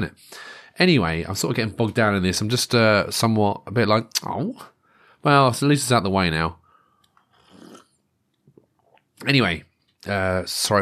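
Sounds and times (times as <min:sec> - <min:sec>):
speech: 0:00.0 - 0:06.6, 0:09.2 - 0:10.7
breathy mouth noises: 0:07.0 - 0:09.1
gulp of tea swallowed: 0:07.4 - 0:07.9.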